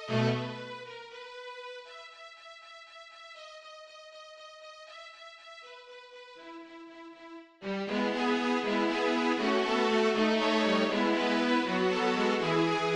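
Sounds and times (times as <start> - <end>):
orchestra: 0.0 - 0.8, 7.6 - 12.9.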